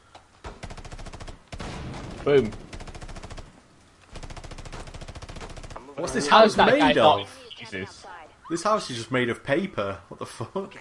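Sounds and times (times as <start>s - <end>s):
video game gunfire: 0.5s - 3.5s, 4.1s - 5.9s
speech: 2.2s - 2.6s, 6.0s - 10.7s.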